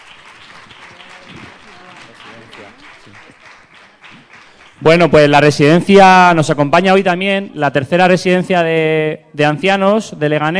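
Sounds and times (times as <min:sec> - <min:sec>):
audience applause: 0:00.0 - 0:05.2
speech: 0:02.6 - 0:03.6, 0:04.8 - 0:10.5.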